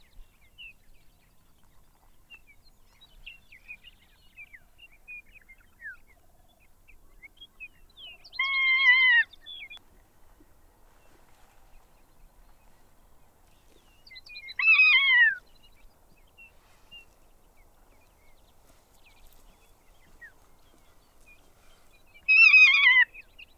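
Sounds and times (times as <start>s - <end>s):
Ferruginous Hawk Buteo regalis: 14.1s - 15.6s, 20.0s - 23.5s.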